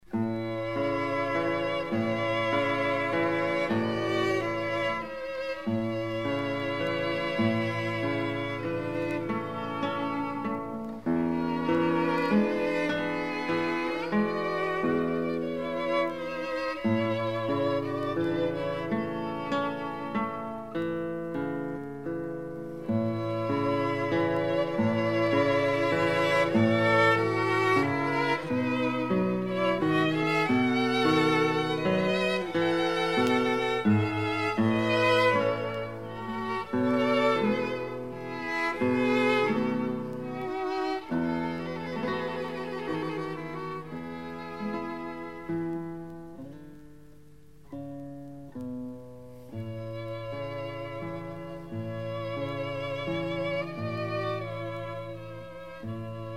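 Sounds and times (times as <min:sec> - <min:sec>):
guitar trio playing: 0:00.0 - 0:56.3.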